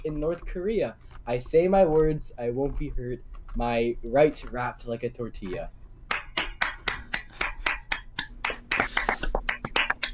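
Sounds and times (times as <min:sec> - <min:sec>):
speech: 0:00.0 - 0:05.8
people clapping: 0:06.1 - 0:10.1.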